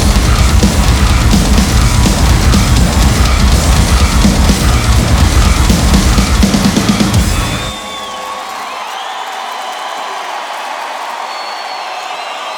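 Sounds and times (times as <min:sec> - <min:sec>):
live drum solo: 0:00.0 - 0:08.1.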